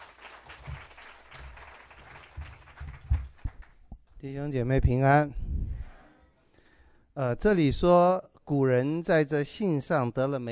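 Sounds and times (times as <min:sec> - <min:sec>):
audience applause: 0:00.0 - 0:03.8
speech: 0:04.2 - 0:05.4, 0:07.2 - 0:10.5.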